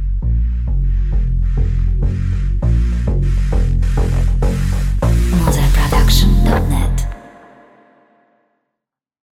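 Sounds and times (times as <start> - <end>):
hard bass music: 0.0 - 7.4.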